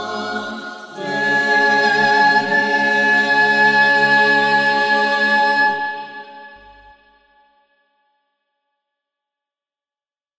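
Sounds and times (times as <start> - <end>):
troparion chant: 0.0 - 6.9.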